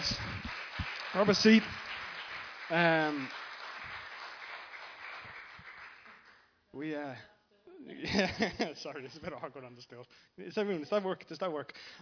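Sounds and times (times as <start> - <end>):
crowd applauding: 0.0 - 6.5
speech: 1.2 - 1.8, 2.7 - 3.4, 6.8 - 12.0.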